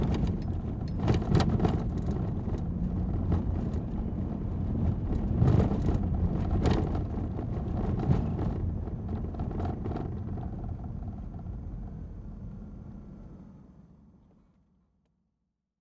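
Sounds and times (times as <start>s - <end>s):
car driving on bumpy road: 0.0s - 12.1s.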